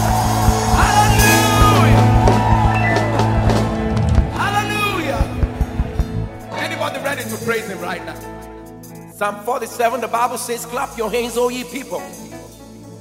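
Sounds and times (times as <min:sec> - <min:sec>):
audience shouting and whooping: 0:00.0 - 0:06.5
speech: 0:09.2 - 0:12.5.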